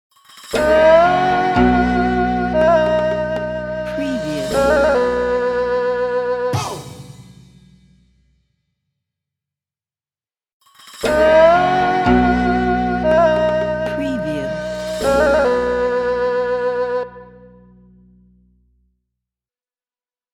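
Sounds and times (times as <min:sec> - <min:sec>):
Chinese logo music: 0:00.6 - 0:08.0, 0:11.1 - 0:16.6.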